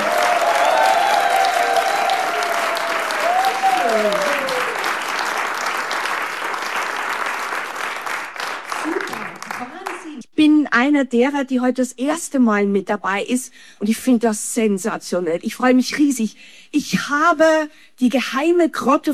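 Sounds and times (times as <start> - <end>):
audience applause: 0.0 - 10.2
speech: 10.9 - 19.1.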